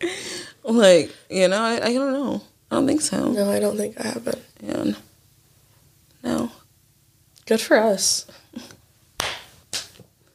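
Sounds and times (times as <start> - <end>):
speech: 0.0 - 5.1, 6.2 - 6.6, 7.5 - 8.8
hands clapping: 9.2 - 10.1.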